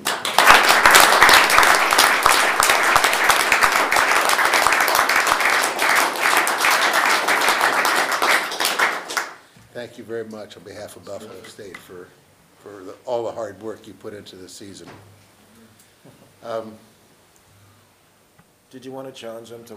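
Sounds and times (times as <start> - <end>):
audience applause for standing athletes: 0.0 - 9.4
speech: 10.1 - 15.2, 16.4 - 16.9, 18.7 - 19.7.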